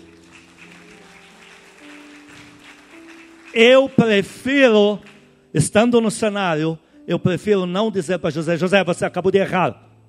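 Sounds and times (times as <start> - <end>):
audience applauding: 0.0 - 5.3
speech: 3.6 - 9.9.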